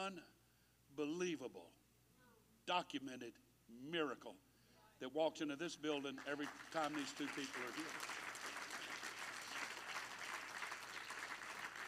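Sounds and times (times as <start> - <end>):
speech: 0.0 - 1.8, 2.7 - 4.4, 5.0 - 8.2
audience clapping: 6.0 - 11.8.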